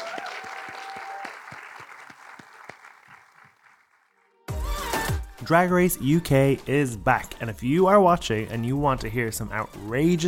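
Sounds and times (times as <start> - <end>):
audience applause: 0.0 - 4.4
speech: 5.4 - 10.2.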